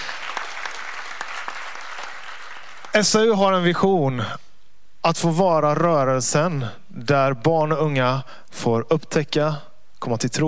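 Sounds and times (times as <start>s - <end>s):
audience applause: 0.0s - 3.2s
speech: 3.0s - 4.4s, 5.0s - 10.4s.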